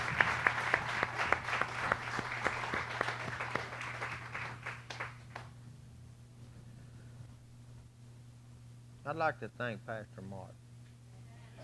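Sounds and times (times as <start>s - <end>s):
crowd applauding: 0.0s - 5.5s
low electrical hum: 0.0s - 11.6s
speech: 9.1s - 10.6s.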